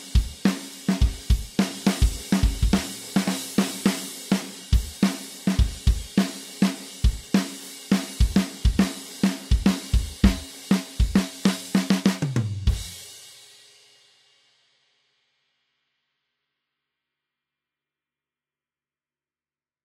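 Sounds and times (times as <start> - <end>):
drums playing in a hall: 0.0 - 13.4.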